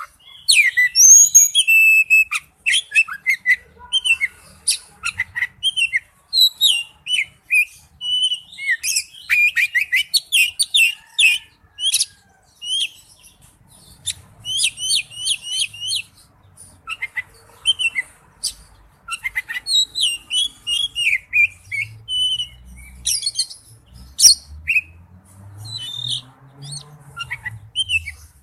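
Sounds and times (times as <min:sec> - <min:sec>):
Oriental magpie-robin song: 0:00.0 - 0:16.3, 0:16.9 - 0:25.0, 0:25.6 - 0:28.4.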